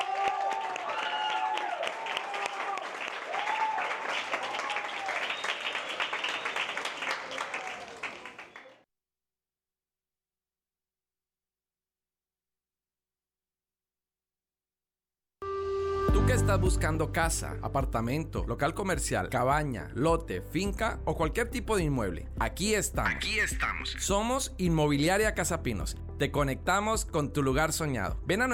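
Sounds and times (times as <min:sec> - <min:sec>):
audience applause: 0:00.0 - 0:08.8
speech: 0:16.5 - 0:28.5.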